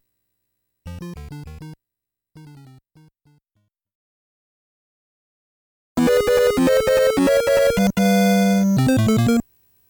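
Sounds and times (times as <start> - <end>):
underground background music: 6.0 - 9.4.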